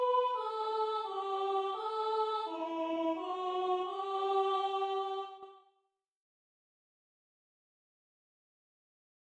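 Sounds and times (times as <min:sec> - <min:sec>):
soprano singing a Christmas carol: 0:00.0 - 0:05.6.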